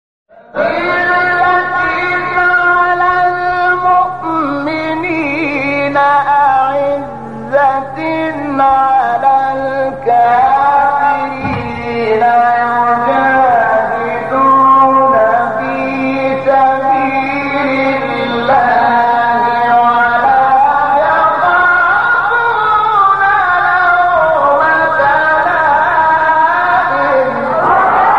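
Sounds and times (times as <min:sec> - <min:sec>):
recitation of a Quran verse: 0:00.3 - 0:28.1.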